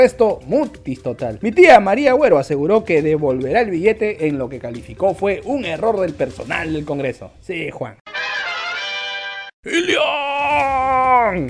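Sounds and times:
speech: 0.0s - 8.0s, 9.6s - 11.4s
loud scream: 9.8s - 11.3s.

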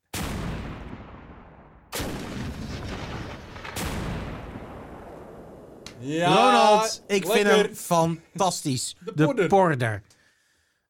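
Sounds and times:
cannon blasts: 0.0s - 5.9s
speech: 6.0s - 10.2s.

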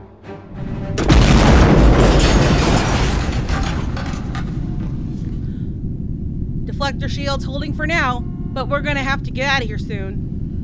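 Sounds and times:
deep explosion boom in a Star Wars space battle: 0.9s - 5.8s
Star Wars blaster fire: 1.0s - 5.5s
speech: 6.9s - 10.3s.

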